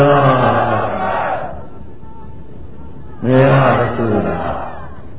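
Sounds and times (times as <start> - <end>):
crowd shouting slogans at a rally speech: 0.0 - 1.8, 3.2 - 5.1.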